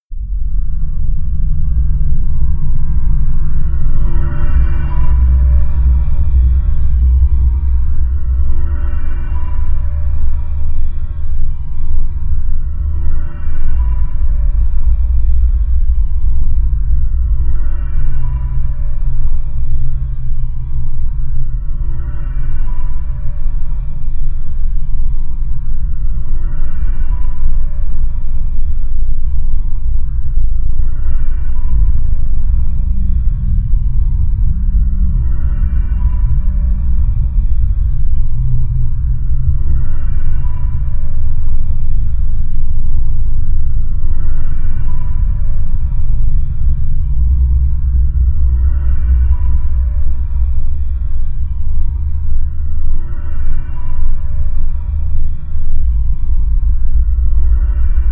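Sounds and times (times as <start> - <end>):
panic drone sound: 0.1 - 58.1.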